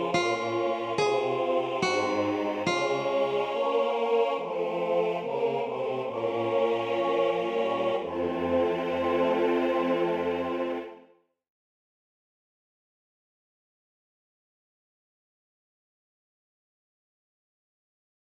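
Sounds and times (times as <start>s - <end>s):
choir sopranos singing a chorale: 0.0s - 11.1s.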